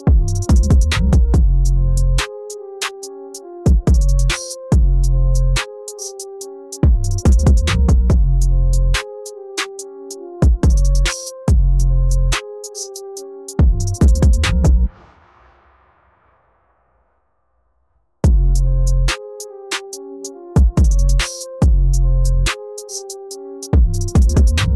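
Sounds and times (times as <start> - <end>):
frenzied bass assault: 0.1 - 2.2, 3.7 - 5.6, 6.8 - 9.0, 10.4 - 12.4, 13.6 - 14.9, 18.2 - 19.1, 20.6 - 22.5, 23.8 - 24.7.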